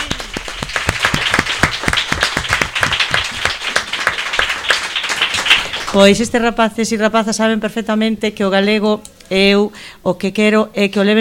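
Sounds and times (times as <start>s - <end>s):
children applauding: 0.0s - 6.0s
speech: 6.0s - 11.1s.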